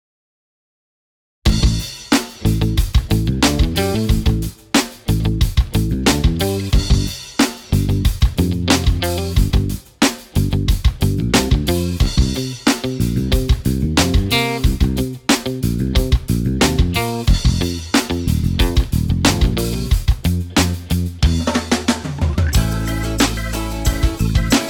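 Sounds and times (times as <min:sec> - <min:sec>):
instrumental music: 0:01.5 - 0:24.6.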